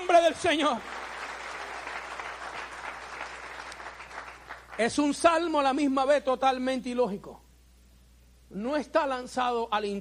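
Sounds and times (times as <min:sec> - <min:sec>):
speech: 0:00.1 - 0:01.0, 0:04.8 - 0:07.4, 0:08.5 - 0:09.9
audience applause: 0:00.6 - 0:04.8.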